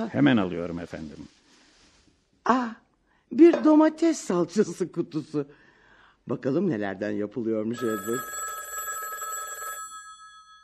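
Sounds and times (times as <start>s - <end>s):
speech: 0.0s - 1.4s, 2.4s - 5.6s, 6.2s - 8.5s
telephone bell ringing: 7.8s - 10.6s.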